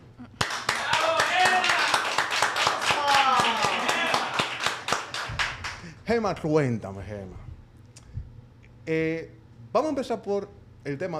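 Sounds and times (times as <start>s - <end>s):
applause: 0.4s - 5.9s
speech: 6.1s - 7.5s, 8.8s - 11.1s.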